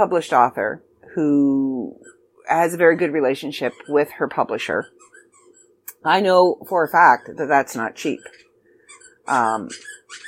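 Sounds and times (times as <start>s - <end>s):
speech: 0.0s - 5.0s, 6.0s - 8.4s, 9.3s - 10.2s
dog squeaking a squeaky toy: 2.0s - 2.3s, 3.6s - 5.8s, 8.0s - 10.2s.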